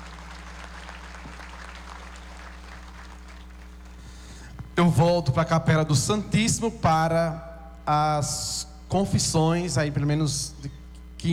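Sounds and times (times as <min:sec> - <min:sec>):
audience clapping: 0:00.0 - 0:04.2
speech: 0:04.8 - 0:11.3.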